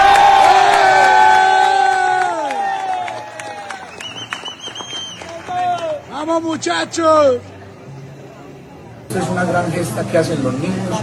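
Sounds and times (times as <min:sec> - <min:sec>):
crowd applause and cheering: 0:00.0 - 0:07.4
speech: 0:06.4 - 0:07.6, 0:09.1 - 0:11.0.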